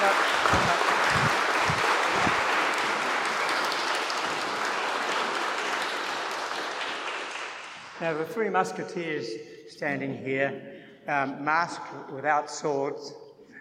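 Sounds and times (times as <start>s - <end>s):
audience applause for the choir: 0.0s - 8.0s
speech: 8.0s - 13.2s.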